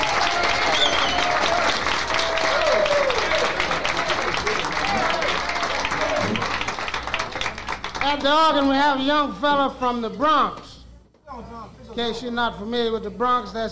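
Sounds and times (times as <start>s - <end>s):
audience applause for a guitarist: 0.0s - 8.7s
speech: 8.1s - 10.6s, 11.4s - 13.7s.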